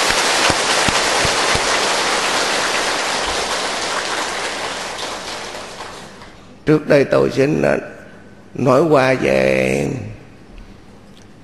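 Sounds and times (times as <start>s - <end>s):
audience applause: 0.0s - 6.4s
speech: 6.7s - 10.1s.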